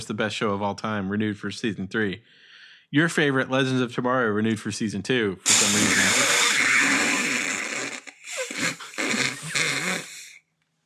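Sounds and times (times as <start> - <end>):
speech: 0.0 - 6.2
fart noises: 5.4 - 10.4.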